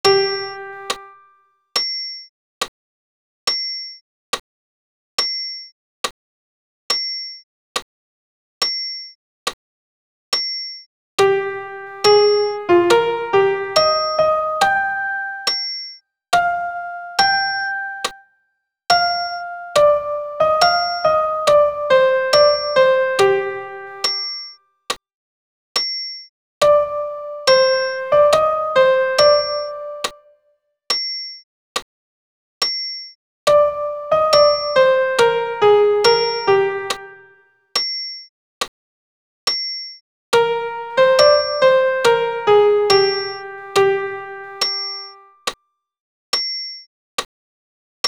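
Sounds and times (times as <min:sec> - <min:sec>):
soprano and solo piano: 0:00.0 - 0:01.2, 0:11.2 - 0:15.6, 0:16.4 - 0:18.2, 0:18.9 - 0:24.2, 0:26.6 - 0:30.3, 0:33.5 - 0:37.4, 0:40.4 - 0:45.3.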